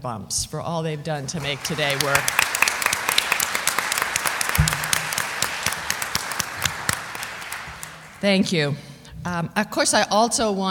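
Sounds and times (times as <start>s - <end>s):
speech: 0.0s - 2.7s, 8.2s - 10.6s
audience applause: 1.4s - 8.3s.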